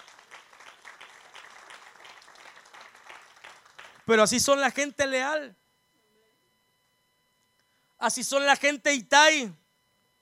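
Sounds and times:
audience applause: 0:00.0 - 0:04.0
speech: 0:04.1 - 0:05.6, 0:08.0 - 0:09.6.

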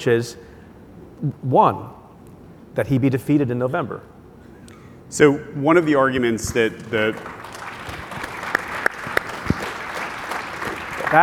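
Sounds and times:
speech: 0:00.0 - 0:00.5, 0:01.2 - 0:02.0, 0:02.8 - 0:04.1, 0:05.1 - 0:07.4
audience applause: 0:06.5 - 0:11.2.

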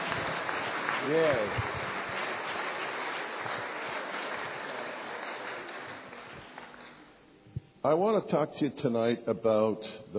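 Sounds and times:
audience applause welcoming guests: 0:00.0 - 0:07.1
speech: 0:01.0 - 0:01.8, 0:07.8 - 0:10.1.

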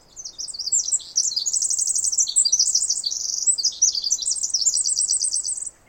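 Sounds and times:
Pacific wren trilling: 0:00.2 - 0:05.7.

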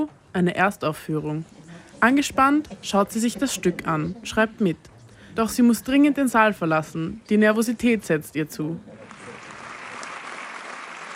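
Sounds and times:
speech: 0:00.0 - 0:08.9
large theatre audience applauding: 0:09.0 - 0:11.1.

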